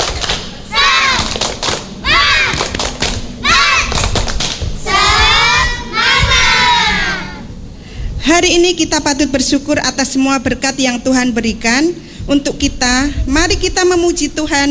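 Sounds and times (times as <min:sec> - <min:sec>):
group rhythmic clapping: 0:00.0 - 0:07.6
loud chanted shouts from many voices: 0:00.4 - 0:02.8, 0:03.4 - 0:04.2, 0:04.8 - 0:07.5
speech: 0:08.2 - 0:14.7.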